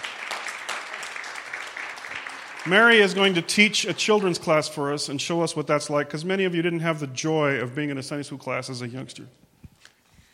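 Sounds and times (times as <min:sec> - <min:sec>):
audience applause: 0:00.0 - 0:04.8
speech: 0:02.6 - 0:09.4.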